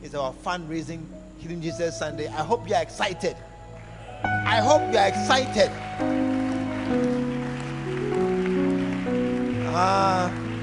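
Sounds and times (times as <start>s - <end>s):
speech: 0.0s - 3.5s, 4.2s - 6.2s, 6.9s - 7.2s, 9.8s - 10.4s
sustained keyboard or organ chords: 0.0s - 10.6s
audience clapping: 3.0s - 10.6s.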